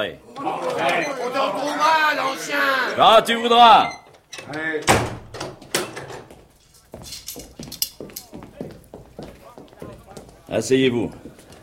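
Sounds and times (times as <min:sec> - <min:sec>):
speech: 0:00.0 - 0:05.1, 0:10.5 - 0:11.3
door creaking and slamming shut: 0:03.6 - 0:06.3
shuffling footsteps: 0:06.0 - 0:11.6.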